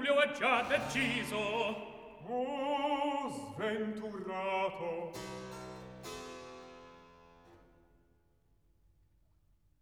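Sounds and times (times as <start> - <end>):
opera recitative: 0.0 - 5.2.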